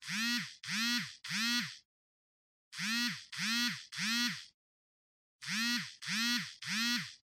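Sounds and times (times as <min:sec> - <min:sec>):
cell phone vibrating in hand: 0:00.0 - 0:01.8, 0:02.8 - 0:04.6, 0:05.4 - 0:07.2.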